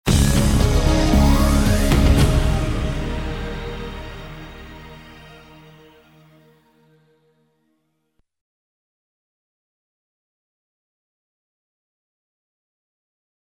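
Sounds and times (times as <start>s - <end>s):
news music stab: 0.1s - 6.9s.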